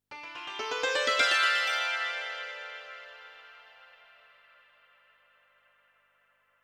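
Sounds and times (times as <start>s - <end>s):
ethnic music: 0.1s - 4.5s.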